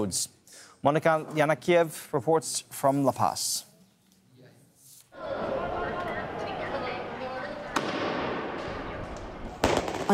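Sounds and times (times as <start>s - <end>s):
speech: 0.0s - 3.7s
street protest crowd roar: 5.2s - 9.6s
firecracker bang at street protest: 7.7s - 10.1s.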